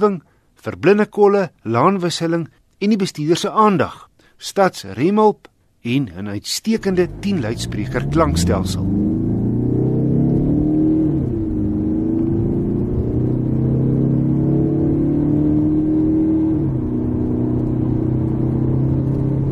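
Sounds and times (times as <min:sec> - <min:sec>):
speech: 0:00.0 - 0:09.0
2.2 turbo diesel car engine accelerating through the revs: 0:06.8 - 0:19.5.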